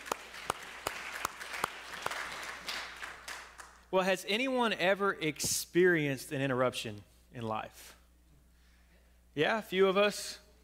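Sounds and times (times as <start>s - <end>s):
audience clapping: 0.0s - 3.8s
speech: 3.9s - 8.0s, 9.4s - 10.4s.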